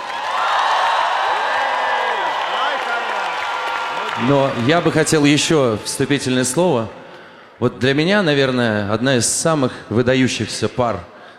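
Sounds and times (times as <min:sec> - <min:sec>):
audience applause: 0:00.0 - 0:05.9
speech: 0:04.2 - 0:07.0, 0:07.6 - 0:11.1.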